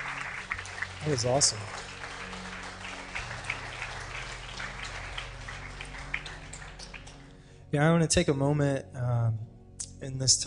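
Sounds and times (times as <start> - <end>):
audience applause: 0.0 - 7.4
speech: 1.0 - 1.9, 7.7 - 10.4.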